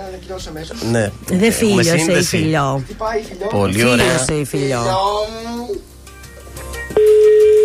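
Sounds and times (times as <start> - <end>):
speech: 0.2 - 5.9
telephone ringing tone on call: 7.0 - 7.6.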